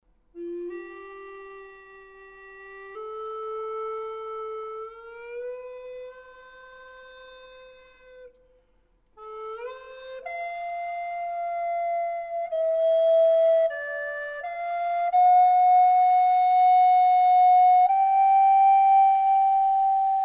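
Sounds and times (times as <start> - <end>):
free improvised music: 0.3 - 20.2.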